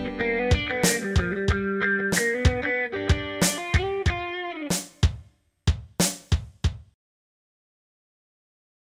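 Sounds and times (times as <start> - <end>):
country music: 0.0 - 4.9.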